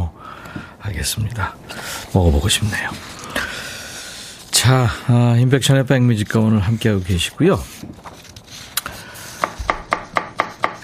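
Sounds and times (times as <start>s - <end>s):
speech: 0.9s - 3.5s, 4.6s - 8.0s
radish chopped on a cutting board: 9.4s - 10.8s.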